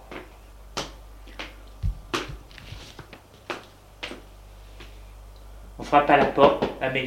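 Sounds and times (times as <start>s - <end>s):
low constant hum: 0.0s - 7.0s
footsteps: 1.3s - 4.2s
speech: 5.8s - 7.0s.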